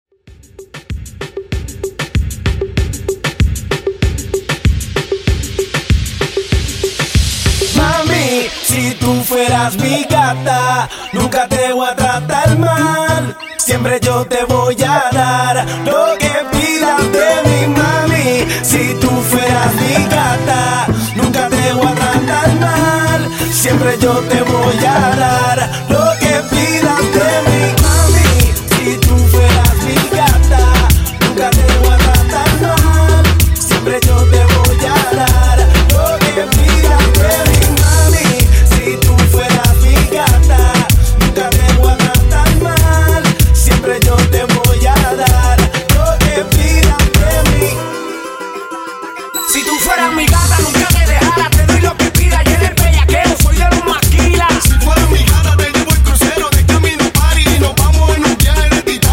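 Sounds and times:
party reggaeton music at 96 BPM: 0:00.1 - 0:59.1.

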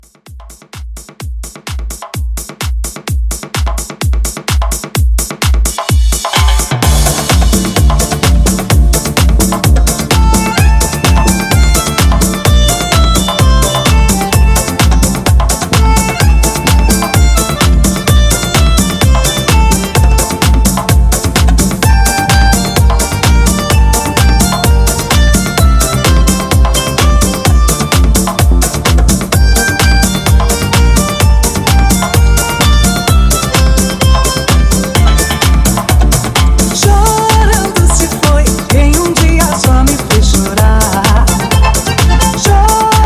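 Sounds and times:
drum intro at 128 bpm: 0:00.0 - 0:43.0.

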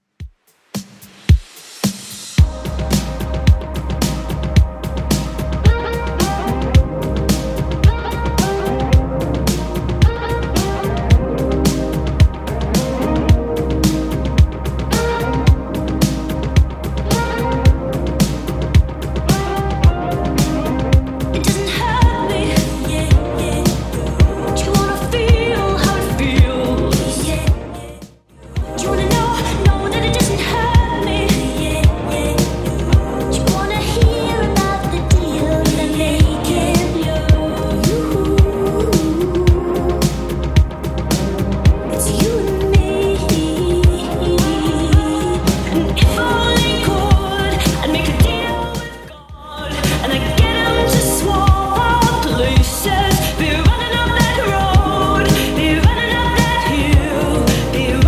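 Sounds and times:
80s-style beat at 110 bpm: 0:00.0 - 0:58.0.

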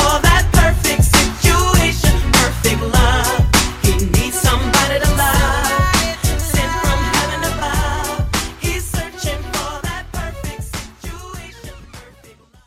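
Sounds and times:
DJ intro drum loop at 100 BPM: 0:00.0 - 0:11.9.

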